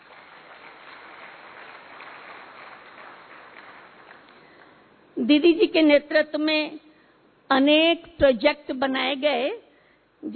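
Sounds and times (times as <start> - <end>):
audience clapping: 0.0 - 4.9
speech: 5.2 - 6.9, 7.5 - 9.6.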